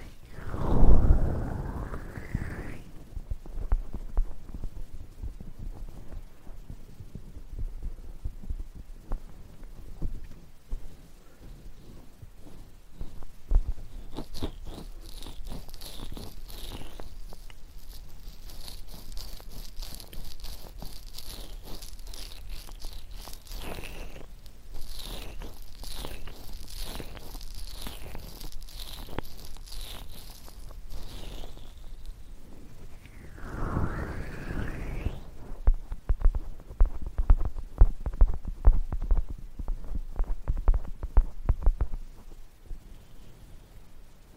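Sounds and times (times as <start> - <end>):
thin bright hiss: 0.0 - 3.3, 11.8 - 36.7
muffled rubbing of ear massage: 0.0 - 7.3, 9.0 - 43.6.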